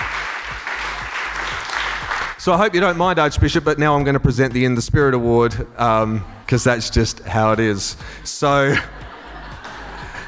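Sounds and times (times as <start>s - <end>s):
round of applause: 0.0s - 2.4s
speech: 2.4s - 9.0s
laughter: 8.5s - 10.2s.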